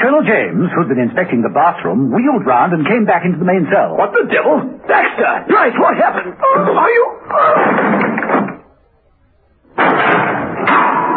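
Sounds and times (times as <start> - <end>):
speech: 0.1 - 8.4
heavy cell door slamming shut: 7.5 - 8.6, 9.8 - 11.1.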